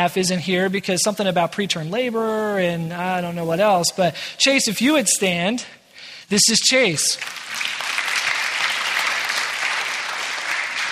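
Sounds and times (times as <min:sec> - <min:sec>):
speech: 0:00.0 - 0:08.0
audience applause: 0:07.2 - 0:10.9.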